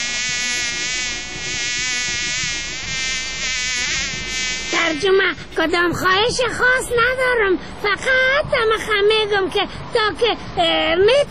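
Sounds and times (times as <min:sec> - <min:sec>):
fly buzzing: 0:00.0 - 0:05.4
speech: 0:04.9 - 0:11.2.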